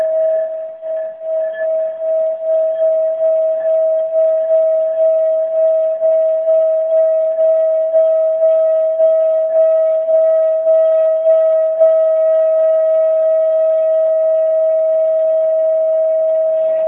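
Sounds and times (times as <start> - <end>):
high-octave singing bowl ringing with a pure tone: 0.0 - 16.8.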